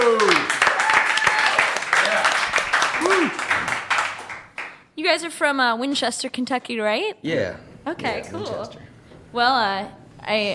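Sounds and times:
audience applause welcoming a two-piece band: 0.0 - 4.8
speech: 5.1 - 10.5.

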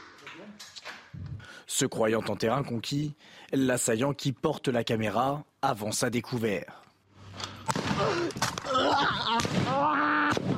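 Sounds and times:
speech: 1.8 - 6.8, 8.0 - 10.5
gunshots: 7.6 - 10.5
people shouting: 7.9 - 10.5.

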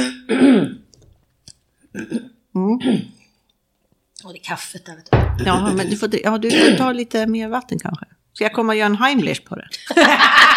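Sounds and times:
throat clearing: 0.0 - 0.8, 2.0 - 3.2
speech: 2.8 - 3.1, 4.3 - 10.5.

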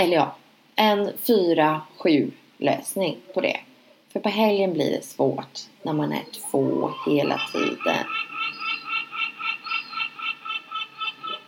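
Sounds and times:
speech: 0.0 - 8.3
faint low hiss: 0.0 - 11.4
seagulls calling: 5.9 - 11.4.

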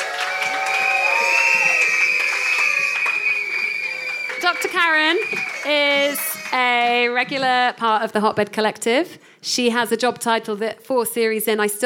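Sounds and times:
crowd cheering and clapping: 0.0 - 7.5
shrill party horns blaring: 0.8 - 6.9
speech: 4.6 - 11.8.

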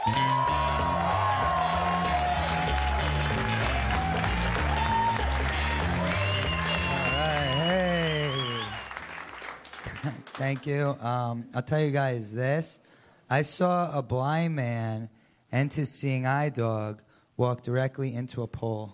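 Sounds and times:
loud walk-on music with a pulsing bass line: 0.0 - 8.0
audience cheers and whoops: 0.0 - 9.2
audience applause for comedian: 0.0 - 10.6
speech: 10.4 - 18.9.

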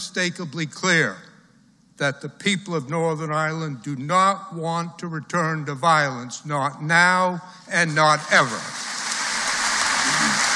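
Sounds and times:
speech: 0.2 - 1.3, 2.0 - 8.8
audience applause: 8.1 - 10.5.

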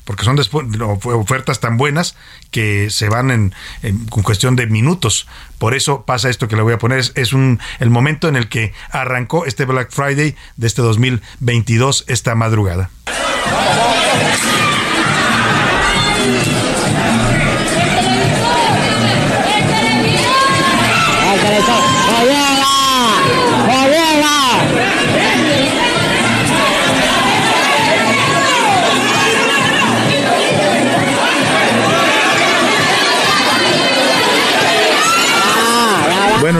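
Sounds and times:
speech: 0.1 - 15.6
crowd pushing the doors of a Walmart in Los Angeles: 13.1 - 36.5.

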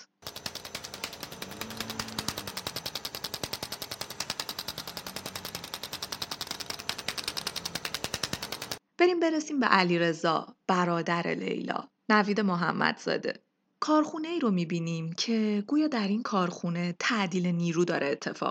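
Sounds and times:
physiotherapy machine pulsing clicks: 0.0 - 8.8
speech: 9.0 - 18.5.

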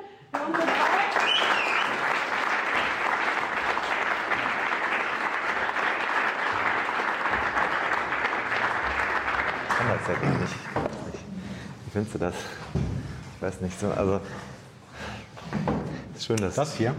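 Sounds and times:
live audience applause: 0.3 - 11.0
speech: 12.0 - 12.8, 13.4 - 14.5, 16.3 - 16.9.

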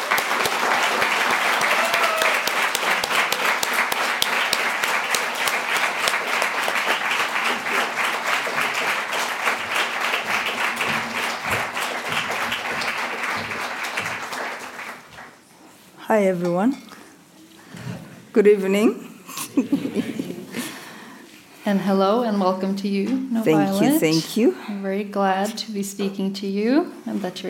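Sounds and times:
audience applause welcoming two authors at a literary event: 0.0 - 15.4
speech: 16.2 - 16.8, 18.4 - 19.0, 19.6 - 19.8, 21.7 - 27.4
laughter: 19.3 - 20.8.

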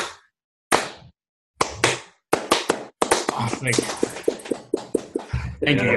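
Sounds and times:
slow clap: 1.6 - 5.3
speech: 3.4 - 4.4, 5.6 - 5.9.

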